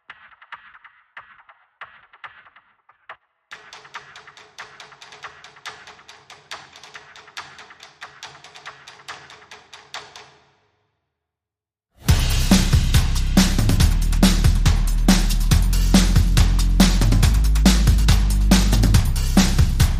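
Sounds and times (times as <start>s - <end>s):
drums: 0.0s - 9.1s, 12.0s - 19.9s
bass: 12.0s - 19.9s.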